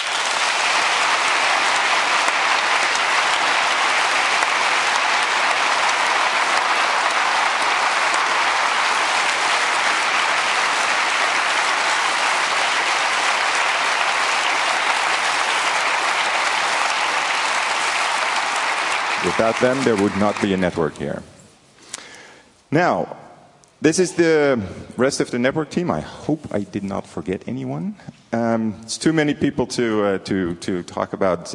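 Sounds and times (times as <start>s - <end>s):
audience applause: 0.0s - 21.0s
speech: 19.4s - 21.3s, 22.7s - 23.2s, 23.8s - 31.5s.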